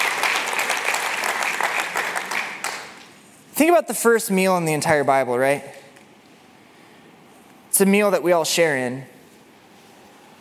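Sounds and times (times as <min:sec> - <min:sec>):
audience applause: 0:00.0 - 0:03.0
speech: 0:03.6 - 0:05.8, 0:07.8 - 0:09.1.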